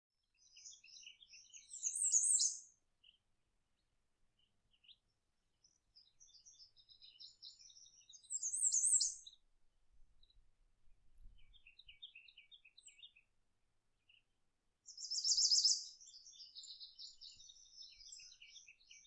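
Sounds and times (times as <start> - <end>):
bird song: 0.1 - 19.0.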